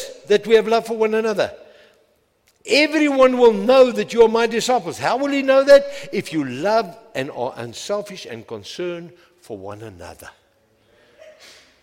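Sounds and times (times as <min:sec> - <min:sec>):
speech: 0:00.3 - 0:01.6, 0:02.6 - 0:10.4
person sneezing: 0:11.1 - 0:11.8.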